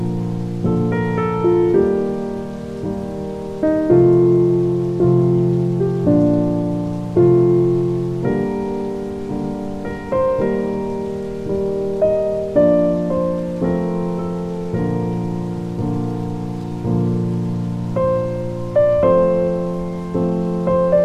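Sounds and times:
healing music: 0.0 - 21.0
rain: 0.0 - 21.0.

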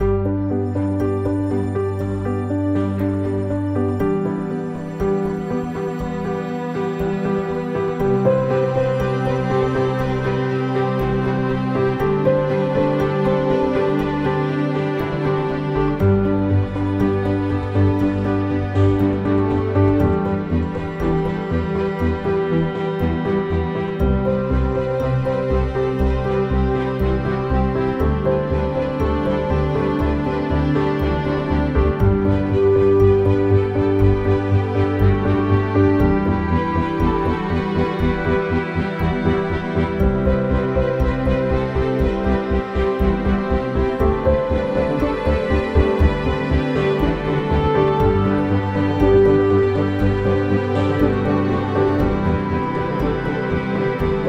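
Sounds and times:
ambient music: 0.0 - 54.2.

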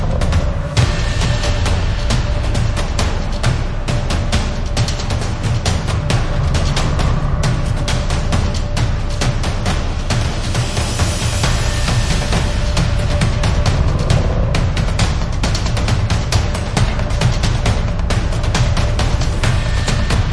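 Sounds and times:
gothic action percussion: 0.0 - 20.3.

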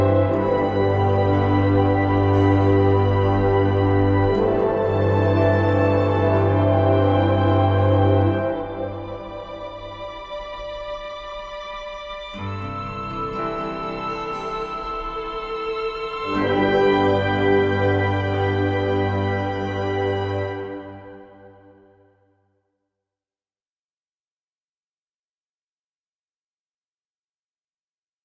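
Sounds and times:
ambient music: 0.0 - 22.2.

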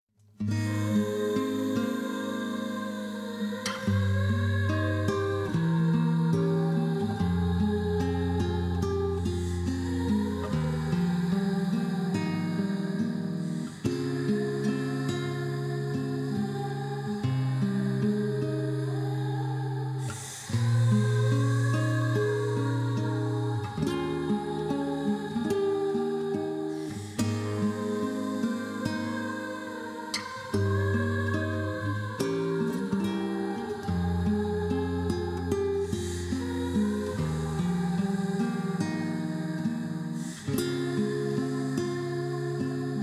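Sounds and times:
whispering vocals: 0.5 - 43.0.

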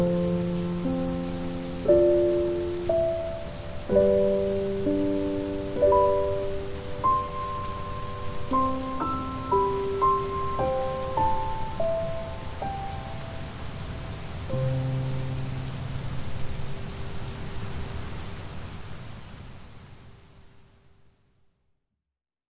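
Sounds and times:
piano: 0.0 - 18.0
rain: 0.0 - 21.6.

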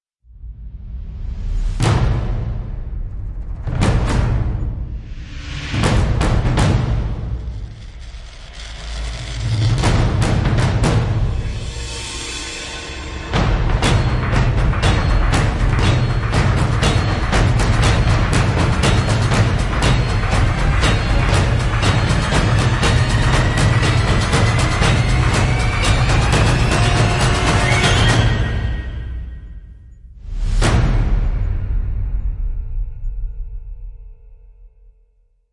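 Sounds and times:
relentless percussion: 0.4 - 34.9.

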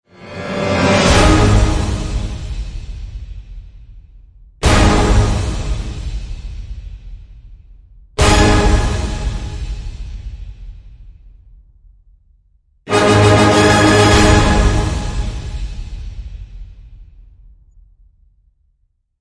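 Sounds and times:
orchestral end hits in G sharp: 0.1 - 2.8, 4.6 - 6.1, 8.2 - 9.9, 12.9 - 16.3.

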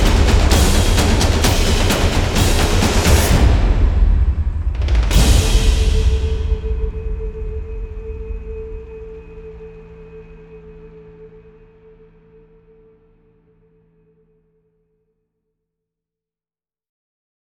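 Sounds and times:
percussion: 0.0 - 12.9.

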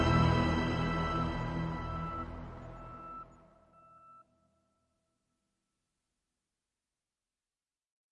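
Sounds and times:
ambient alarm: 0.0 - 4.8.

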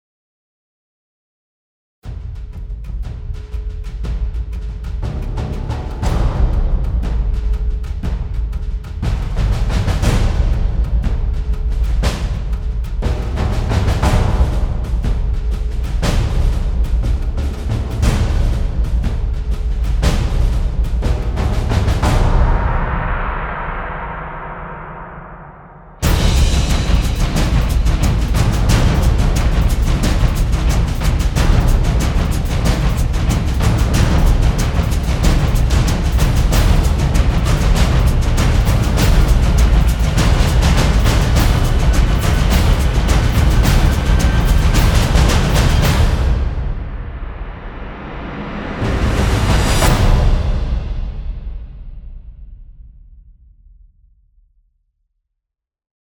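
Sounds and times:
war drums percussion: 2.0 - 52.9.

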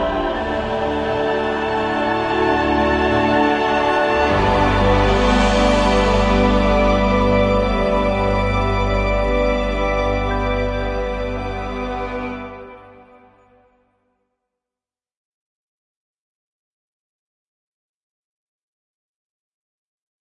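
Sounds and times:
light ambient music: 0.0 - 13.7.

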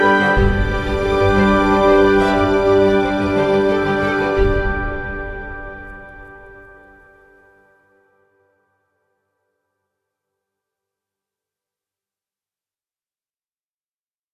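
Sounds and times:
ambient music: 0.0 - 8.5.

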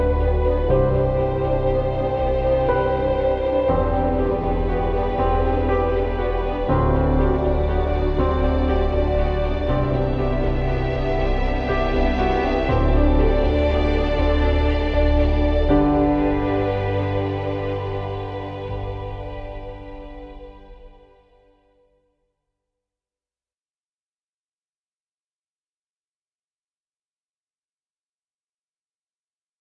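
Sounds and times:
ambient music: 0.0 - 21.9.

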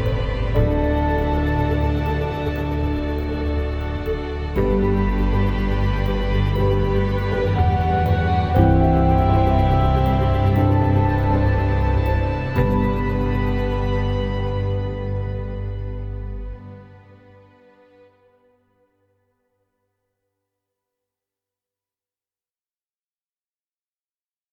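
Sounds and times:
ambient music: 0.0 - 18.6.

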